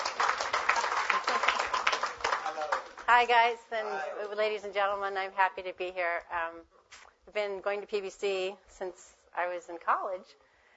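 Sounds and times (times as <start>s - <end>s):
audience applauding to welcome a speaker: 0.0s - 3.3s
speech: 3.1s - 10.4s.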